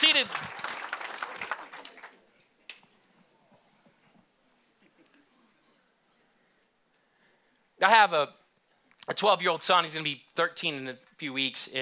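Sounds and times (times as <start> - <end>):
speech: 0.0 - 0.7, 7.8 - 8.4, 9.1 - 11.8
crowd clapping hands: 0.0 - 2.3.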